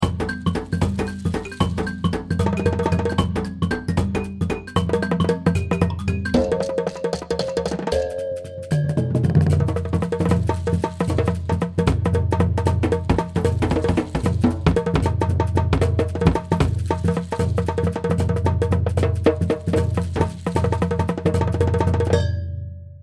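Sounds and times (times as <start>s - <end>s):
world music kit: 0.0s - 22.8s.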